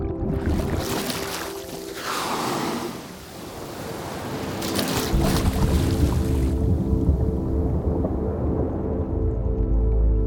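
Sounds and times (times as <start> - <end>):
steady low rumble of water: 0.0 - 10.2
whale blowing air at the water surface: 1.8 - 4.0.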